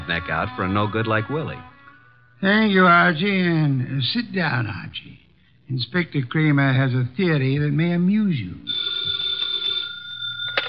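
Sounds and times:
speech: 0:00.1 - 0:01.7, 0:02.4 - 0:08.8
telephone bell ringing: 0:08.7 - 0:10.6.

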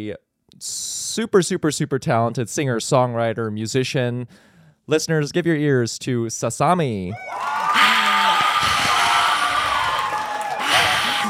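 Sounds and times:
speech: 0:00.0 - 0:08.0
live crowd cheering and whooping: 0:07.1 - 0:11.2.

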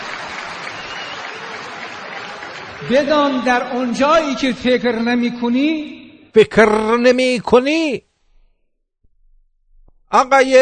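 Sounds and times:
crowd applauding: 0:00.0 - 0:03.5
speech: 0:02.8 - 0:08.1, 0:10.1 - 0:10.5.

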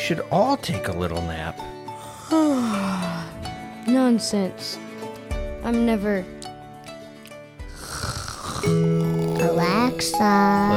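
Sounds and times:
speech: 0:00.1 - 0:04.9, 0:05.6 - 0:06.4, 0:08.6 - 0:10.7
person snoring: 0:01.9 - 0:03.5, 0:07.7 - 0:09.6.

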